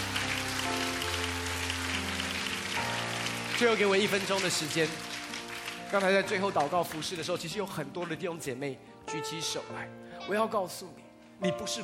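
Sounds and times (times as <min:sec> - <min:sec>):
audience applause: 0:00.0 - 0:07.5
speech: 0:03.6 - 0:05.1, 0:05.9 - 0:11.8.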